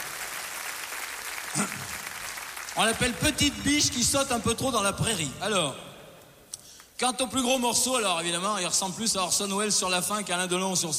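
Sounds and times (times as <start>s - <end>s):
audience applause: 0.0s - 3.2s
speech: 2.8s - 5.9s, 7.0s - 10.9s.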